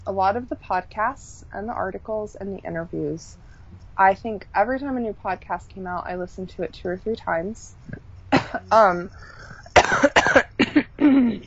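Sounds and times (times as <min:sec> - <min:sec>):
speech: 0:00.1 - 0:11.4
congested person coughing: 0:07.9 - 0:11.4.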